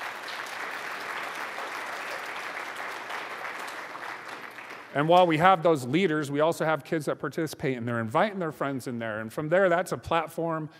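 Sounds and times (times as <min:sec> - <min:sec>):
audience applause: 0:00.0 - 0:05.2
speech: 0:04.9 - 0:10.7.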